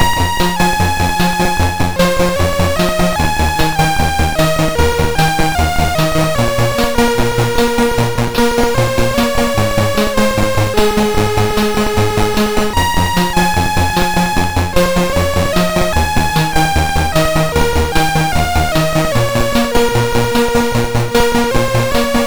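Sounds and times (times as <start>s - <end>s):
MOS6581R2 chip synth sample: 0.0s - 22.2s.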